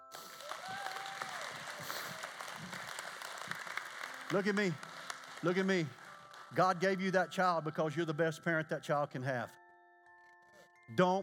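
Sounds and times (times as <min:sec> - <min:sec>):
audience applause: 0:00.0 - 0:06.9
speech: 0:04.3 - 0:09.6, 0:10.9 - 0:11.2.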